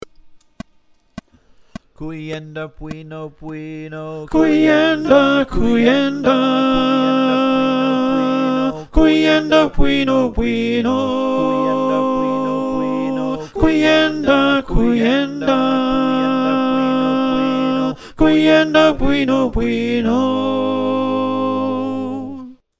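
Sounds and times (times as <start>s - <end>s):
alto choir singing: 4.3s - 22.5s.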